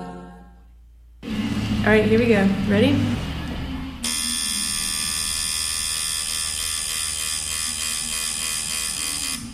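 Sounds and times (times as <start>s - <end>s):
low rumble: 1.2s - 4.0s
speech: 1.9s - 3.3s
tattoo machine buzzing: 4.1s - 9.5s.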